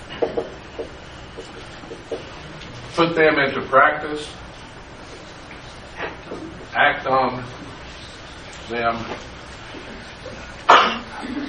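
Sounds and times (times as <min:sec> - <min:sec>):
speech: 0:03.0 - 0:04.4, 0:06.8 - 0:07.6, 0:08.7 - 0:09.4
person sneezing: 0:10.7 - 0:11.4.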